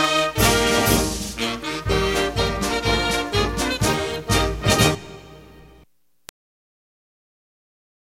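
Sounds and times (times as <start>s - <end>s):
sung anthem: 0.0s - 5.8s.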